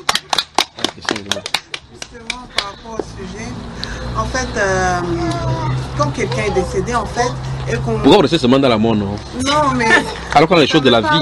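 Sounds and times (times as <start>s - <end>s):
overlapping voices talking: 0.0s - 2.8s
scattered hand claps from a small group: 0.0s - 3.1s
speech: 2.2s - 11.2s.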